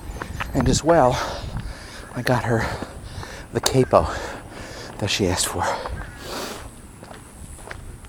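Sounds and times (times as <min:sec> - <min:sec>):
speech: 0:00.6 - 0:01.4, 0:02.2 - 0:02.9, 0:03.5 - 0:04.3, 0:05.0 - 0:06.0
person sniffing: 0:06.2 - 0:06.7.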